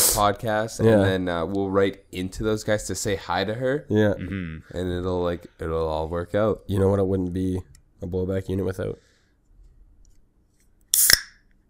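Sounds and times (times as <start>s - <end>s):
speech: 0.2s - 9.1s
can of Nestea iced tea opening with pop and fizz: 10.9s - 11.4s.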